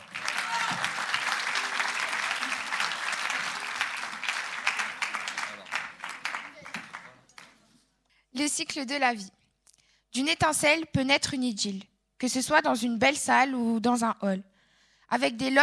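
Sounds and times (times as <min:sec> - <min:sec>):
audience applause: 0:00.0 - 0:07.6
speech: 0:08.4 - 0:09.4, 0:10.2 - 0:14.5, 0:15.1 - 0:15.6.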